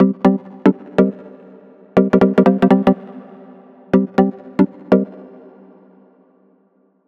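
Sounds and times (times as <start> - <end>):
melodic loops: 0.0 - 1.4, 2.0 - 3.2, 3.9 - 5.2.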